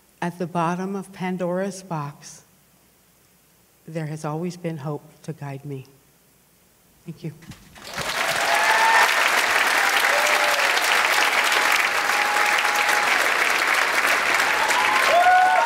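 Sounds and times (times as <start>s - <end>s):
speech: 0.2s - 2.4s, 3.9s - 6.0s, 7.1s - 7.6s
audience applause and cheering: 7.8s - 15.6s.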